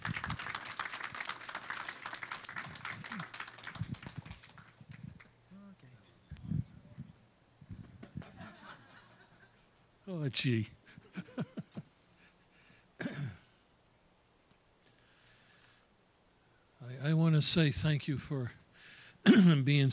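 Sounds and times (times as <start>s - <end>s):
church congregation applauding a guest preacher: 0.0s - 5.3s
laughter: 8.2s - 9.6s, 11.0s - 11.9s
speech: 10.1s - 10.8s, 17.4s - 18.6s, 19.4s - 19.9s.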